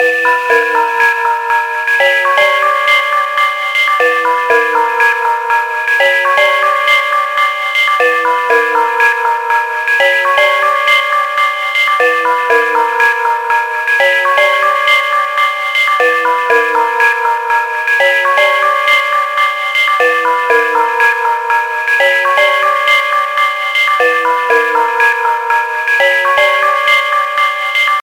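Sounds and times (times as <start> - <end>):
ringtone melody: 0.0 - 28.0.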